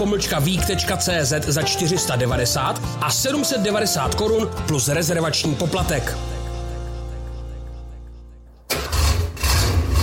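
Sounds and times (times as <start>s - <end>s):
speech: 0.0s - 6.4s
classic car engine starting and revving: 8.6s - 10.0s.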